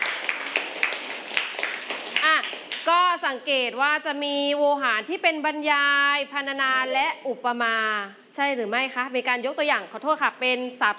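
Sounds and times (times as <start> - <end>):
audience clapping for a class representative: 0.0 - 3.0
speech: 3.3 - 10.9.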